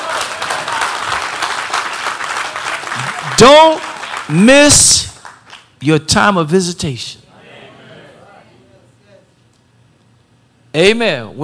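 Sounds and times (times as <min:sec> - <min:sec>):
audience hand clapping: 0:00.0 - 0:05.8
speech: 0:03.4 - 0:05.1, 0:05.8 - 0:07.2, 0:10.8 - 0:11.4.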